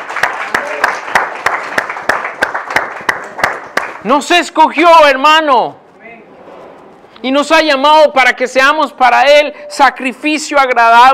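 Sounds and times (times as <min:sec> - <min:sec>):
audience applause: 0:00.0 - 0:04.0
speech: 0:04.0 - 0:05.8, 0:07.2 - 0:11.1.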